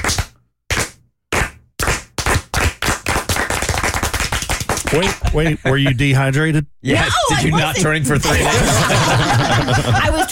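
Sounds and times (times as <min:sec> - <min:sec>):
group clapping: 0:00.0 - 0:05.4
speech: 0:04.9 - 0:10.3
laughter: 0:07.4 - 0:10.3.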